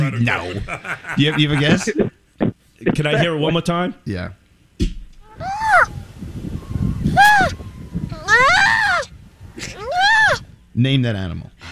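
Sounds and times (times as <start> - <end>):
laughter: 0.0 - 2.2
speech: 0.2 - 2.1, 2.9 - 5.0, 10.8 - 11.6
baby seal call: 5.2 - 6.0, 7.1 - 10.4.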